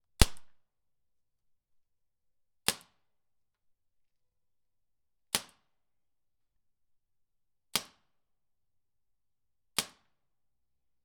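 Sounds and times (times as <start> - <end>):
paintball gun firing: 0.2 - 0.6.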